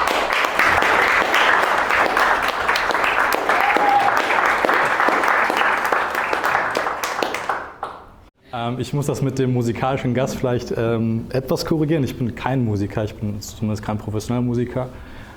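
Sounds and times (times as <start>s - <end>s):
audience applause: 0.0s - 8.2s
speech: 8.7s - 15.1s.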